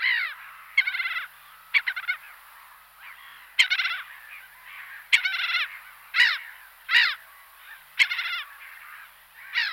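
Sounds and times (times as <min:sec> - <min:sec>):
black-headed gull calls: 0:00.0 - 0:02.2, 0:03.0 - 0:09.7.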